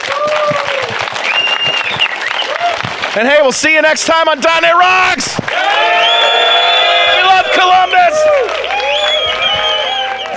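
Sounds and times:
audience applause: 0:00.0 - 0:10.3
speech: 0:03.2 - 0:06.4.

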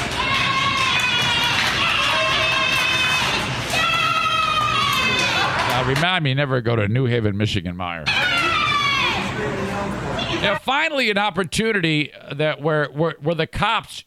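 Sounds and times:
woman cheering in a crowd: 0:00.1 - 0:05.7, 0:08.1 - 0:09.3
speech: 0:05.9 - 0:08.3, 0:09.4 - 0:14.0.

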